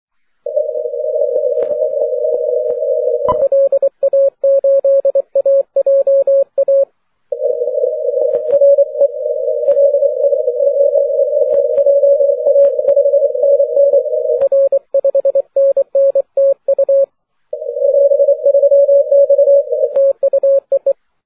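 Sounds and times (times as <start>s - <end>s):
40m band CW Morse code tones: 0.5s - 21.0s.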